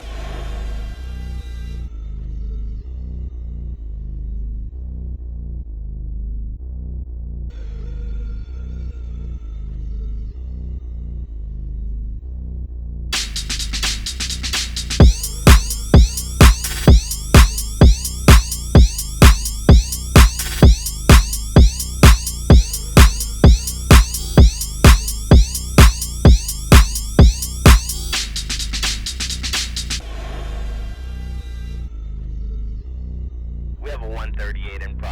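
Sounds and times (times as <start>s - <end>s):
tabata workout music: 13.2s - 30.0s.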